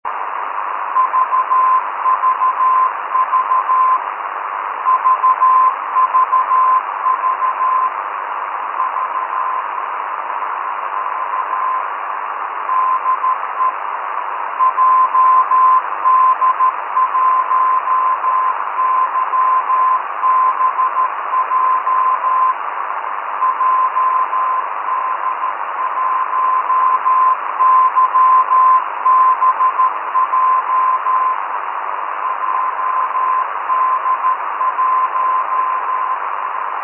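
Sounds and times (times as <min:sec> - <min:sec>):
radio beacon signal: 0:00.1 - 0:36.8.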